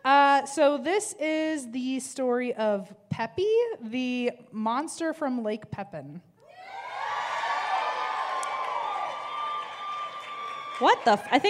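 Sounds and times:
speech: 0.4s - 6.3s, 10.8s - 11.4s
scattered audience clapping: 7.0s - 11.4s.

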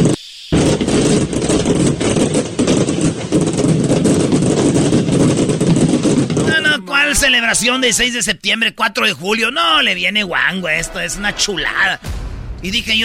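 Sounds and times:
fireworks going off from an overturned truck: 0.0s - 6.8s
speech: 7.5s - 13.0s.

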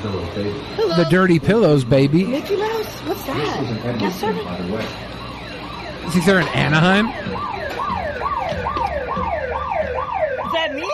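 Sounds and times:
speech: 0.0s - 5.2s, 6.0s - 7.9s
store alarm sounding: 0.8s - 10.9s.

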